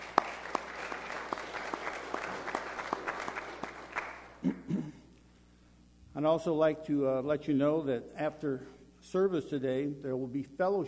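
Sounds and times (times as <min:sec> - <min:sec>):
audience applause: 0:00.0 - 0:04.4
speech: 0:06.2 - 0:10.8.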